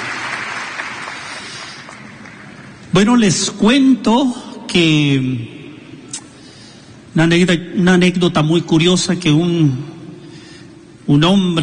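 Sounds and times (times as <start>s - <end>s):
congregation applause at a church service: 0.0s - 2.8s
speech: 3.0s - 5.6s, 7.2s - 10.0s, 11.1s - 11.6s.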